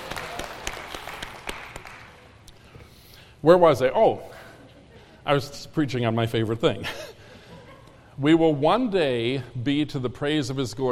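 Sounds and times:
audience applause: 0.0 - 2.2
speech: 3.4 - 4.4, 5.3 - 7.1, 8.2 - 10.9.

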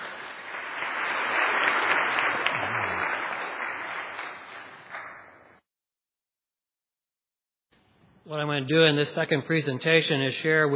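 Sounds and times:
audience applause: 0.0 - 5.6
speech: 8.3 - 10.7.

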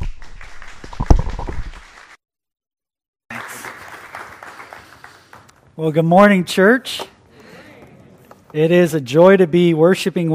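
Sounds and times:
church audience clapping: 0.0 - 2.2, 3.3 - 5.8
speech: 5.8 - 7.1, 8.5 - 10.3.

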